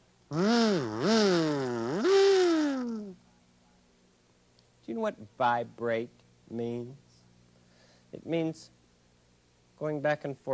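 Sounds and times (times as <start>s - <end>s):
kazoo being played: 0.3s - 3.2s
speech: 5.0s - 7.0s, 8.1s - 8.8s, 9.8s - 10.5s.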